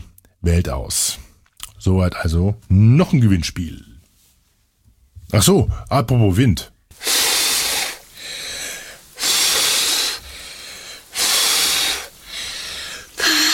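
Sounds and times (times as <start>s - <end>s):
speech: 0.4s - 3.9s, 5.3s - 6.7s
person blowing air hard: 6.9s - 13.5s.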